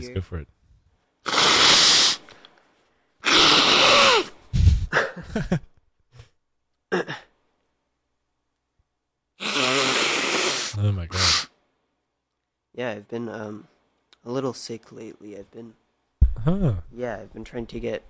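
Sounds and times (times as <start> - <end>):
speech: 0.0 - 0.6, 5.2 - 5.7, 10.8 - 11.4, 12.8 - 15.8, 16.4 - 18.0
nose blowing: 1.2 - 2.3, 3.2 - 4.9, 9.4 - 11.5.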